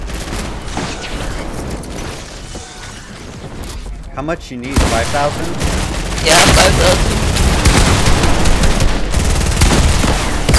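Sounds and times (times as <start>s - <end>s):
rapid gunfire from a gold SMG in a video game: 0.0s - 2.1s, 4.7s - 10.5s
speech: 4.2s - 7.2s.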